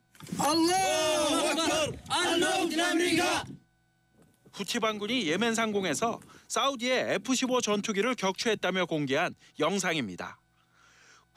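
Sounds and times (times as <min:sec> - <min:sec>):
armed men cheering over Saudi jet wreckage: 0:00.3 - 0:03.5
speech: 0:00.4 - 0:03.5, 0:04.6 - 0:10.4.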